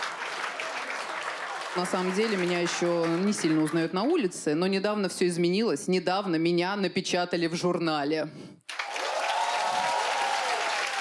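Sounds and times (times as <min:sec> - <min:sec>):
audience applause after a performer's line: 0:00.0 - 0:03.8, 0:08.7 - 0:11.0
speech: 0:01.8 - 0:08.6.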